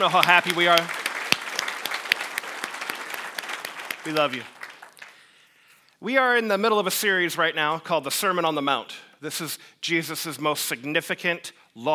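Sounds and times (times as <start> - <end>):
speech: 0.0 - 1.0, 4.0 - 4.6, 6.0 - 11.9
church congregation applauding in welcome: 0.0 - 5.5.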